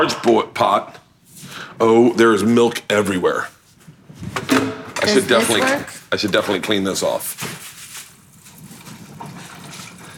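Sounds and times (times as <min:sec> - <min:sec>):
speech: 0:00.0 - 0:03.6, 0:04.2 - 0:07.7
water pouring from fridge dispenser: 0:08.3 - 0:10.1.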